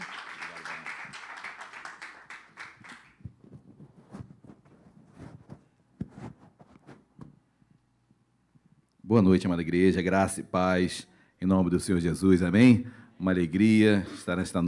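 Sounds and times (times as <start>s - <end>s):
audience applause: 0.0s - 3.2s
speech: 9.1s - 14.6s.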